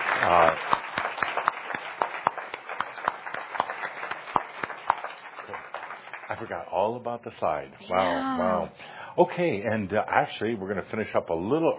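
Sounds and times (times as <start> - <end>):
audience applause: 0.0 - 6.6
speech: 0.2 - 0.8, 6.4 - 11.7.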